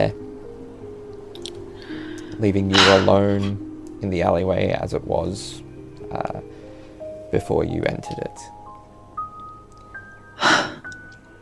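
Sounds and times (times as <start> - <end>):
speech: 0.0 - 0.2, 2.4 - 6.6, 7.3 - 8.6
woman breathing: 1.7 - 2.4, 6.5 - 7.1, 10.4 - 11.0.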